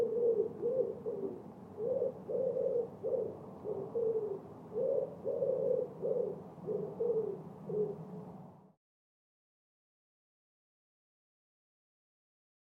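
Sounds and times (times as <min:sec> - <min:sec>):
bird cooing with low soft notes: 0:00.0 - 0:08.3.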